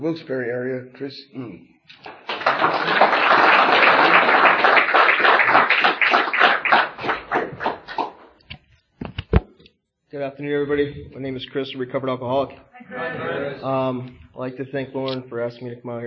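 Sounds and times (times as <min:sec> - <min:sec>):
speech: 0:00.0 - 0:06.9, 0:10.2 - 0:16.0
audience applause at a recovery meeting welcoming a speaker: 0:02.0 - 0:08.4.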